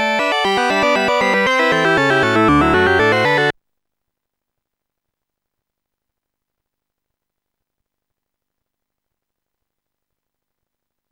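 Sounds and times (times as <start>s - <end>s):
hornpipe tune: 0.2s - 3.5s.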